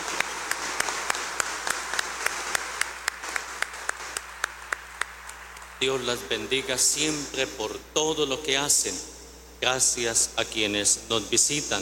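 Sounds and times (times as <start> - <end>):
audience applause: 0.0 - 6.1
speech: 5.8 - 11.7.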